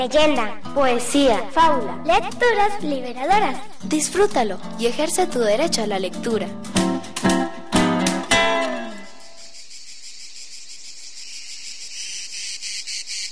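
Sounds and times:
speech: 0:00.0 - 0:06.8
cicadas chirping: 0:08.5 - 0:13.3.

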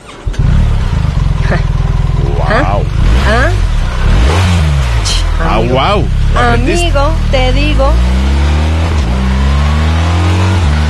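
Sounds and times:
BMW R1300 GS motorcycle engine roaring: 0:00.0 - 0:10.8
speech: 0:05.7 - 0:08.2.

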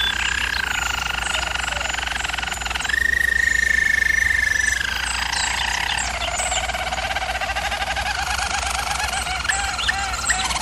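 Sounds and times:
German Roller canary rolling trill: 0:00.0 - 0:10.5.

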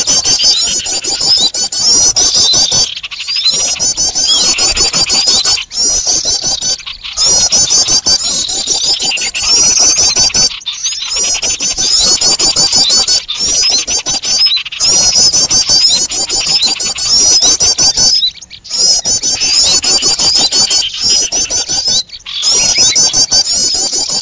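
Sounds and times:
bird chorus: 0:00.0 - 0:24.2.

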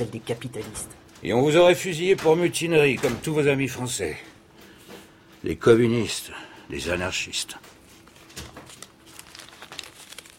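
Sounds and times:
speech: 0:00.0 - 0:04.3, 0:05.4 - 0:07.7
old printed paper documents glued together being handled: 0:07.9 - 0:10.3.

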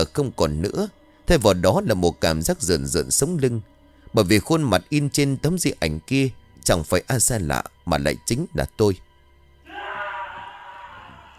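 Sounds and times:
speech: 0:00.1 - 0:09.0
man screaming loudly in fright: 0:09.7 - 0:11.3.

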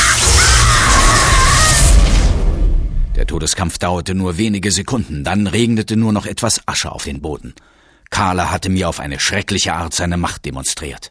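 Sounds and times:
magic lightning bolt exploding: 0:00.0 - 0:03.5
speech: 0:03.4 - 0:11.1.

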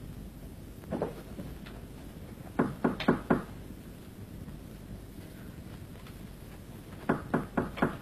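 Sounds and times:
hiss: 0:00.0 - 0:08.0
brother knocking on his sister's door: 0:02.6 - 0:03.5, 0:07.0 - 0:08.0.

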